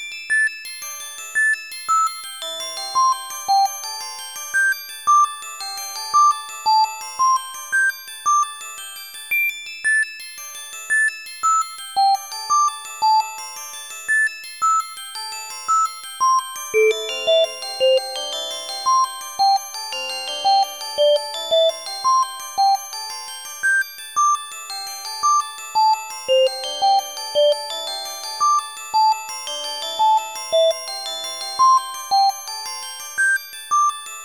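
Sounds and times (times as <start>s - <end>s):
glockenspiel: 0.2s - 34.2s
ocarina: 16.8s - 18.0s.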